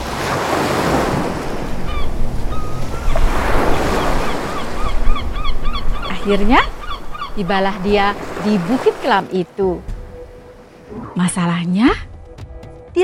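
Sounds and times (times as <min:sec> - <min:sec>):
ocean waves: 0:00.0 - 0:11.9
birds chirping: 0:01.7 - 0:10.9
speech: 0:06.3 - 0:06.7, 0:07.4 - 0:09.9, 0:10.9 - 0:12.1.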